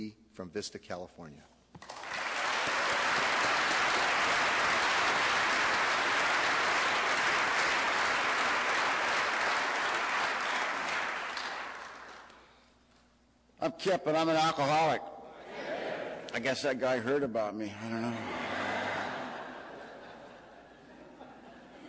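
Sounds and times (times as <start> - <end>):
speech: 0.0 - 2.0, 13.8 - 15.1, 16.4 - 18.5
audience applause welcoming a speaker at an evening meeting: 1.8 - 12.4
laughter: 15.4 - 16.4, 17.8 - 21.8.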